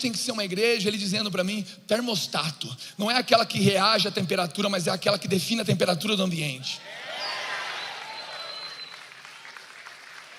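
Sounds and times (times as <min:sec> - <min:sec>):
speech: 0:00.0 - 0:07.1
faint whistles or cheers: 0:07.2 - 0:09.1
audience applauding: 0:07.2 - 0:10.3.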